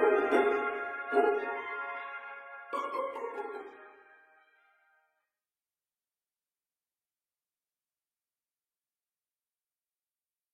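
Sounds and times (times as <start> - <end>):
instrumental music: 0.0 - 5.3.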